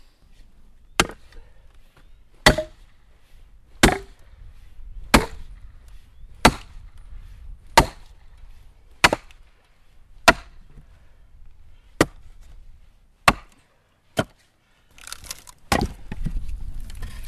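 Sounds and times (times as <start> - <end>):
axe chopping wood: 1.0 - 1.3, 2.4 - 2.8, 3.8 - 4.2, 5.1 - 5.5, 6.4 - 6.8, 7.8 - 8.1, 9.0 - 9.4, 10.2 - 10.6, 12.0 - 12.3, 13.2 - 13.6, 14.2 - 14.4, 15.0 - 16.4
wood cracking and splintering as it splits: 14.9 - 17.2.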